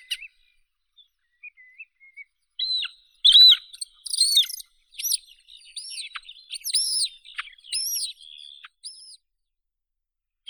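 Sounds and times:
Montagu's harrier Circus pygargus calling: 2.7s - 7.1s.

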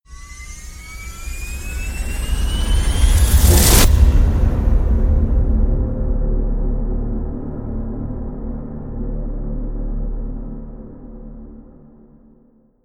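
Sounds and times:
rising tonal hit: 0.1s - 9.3s.

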